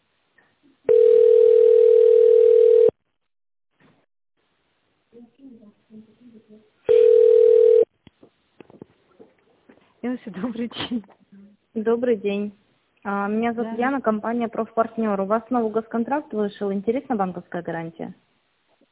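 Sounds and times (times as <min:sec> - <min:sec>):
telephone ringback tone while on hold: 0:00.9 - 0:03.0, 0:06.9 - 0:07.9
speech: 0:10.1 - 0:11.2, 0:11.8 - 0:18.2.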